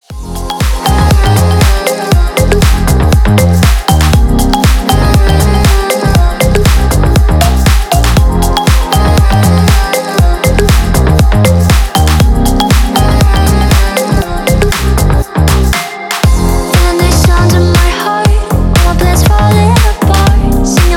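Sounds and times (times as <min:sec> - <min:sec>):
funk music: 0:00.0 - 0:20.9.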